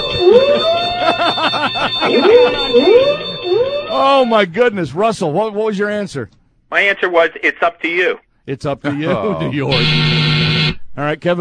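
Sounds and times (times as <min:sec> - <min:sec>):
game show wrong-answer buzzer: 0:00.0 - 0:04.3, 0:09.6 - 0:10.8
laughter: 0:00.5 - 0:02.9, 0:08.8 - 0:09.8
speech: 0:01.6 - 0:11.3.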